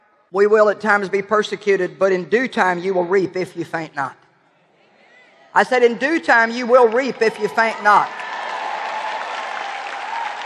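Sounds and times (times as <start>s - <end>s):
speech: 0.3s - 4.2s, 5.6s - 8.2s
crowd applauding: 6.4s - 10.4s.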